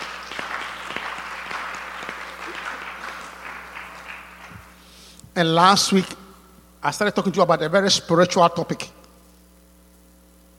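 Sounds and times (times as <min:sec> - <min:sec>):
church congregation applauding: 0:00.0 - 0:05.0
speech: 0:05.4 - 0:06.2, 0:06.8 - 0:09.0.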